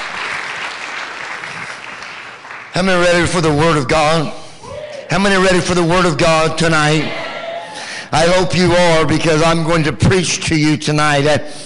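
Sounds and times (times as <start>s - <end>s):
crowd hand clapping: 0.0s - 3.0s
speech: 2.8s - 4.4s, 5.1s - 7.2s, 8.1s - 11.6s.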